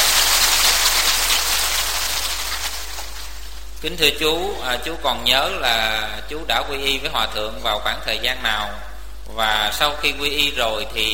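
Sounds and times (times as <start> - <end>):
crowd applauding: 0.0 - 3.4
speech: 3.8 - 11.1.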